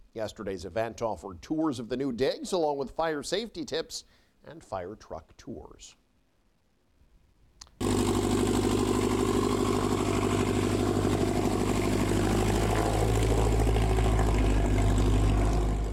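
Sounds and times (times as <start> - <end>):
speech: 0.2 - 6.0
small propeller plane engine droning: 7.8 - 15.9.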